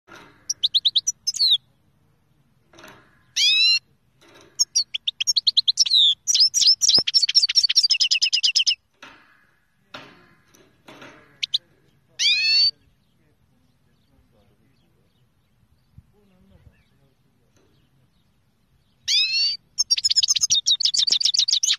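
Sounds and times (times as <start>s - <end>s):
Kermani finch song from Kerman: 0.1s - 21.7s.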